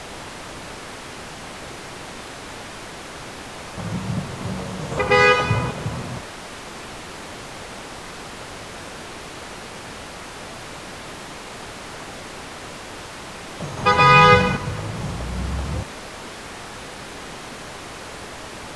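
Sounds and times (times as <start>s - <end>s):
traffic background noise: 3.8s - 6.2s, 13.6s - 15.9s.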